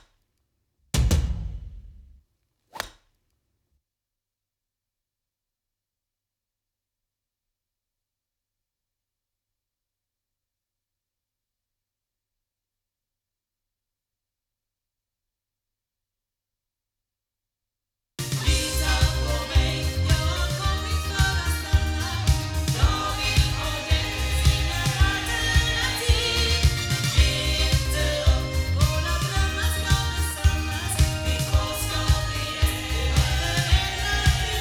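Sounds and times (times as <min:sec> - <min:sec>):
loudspeakers: 0:18.4 - 0:34.5.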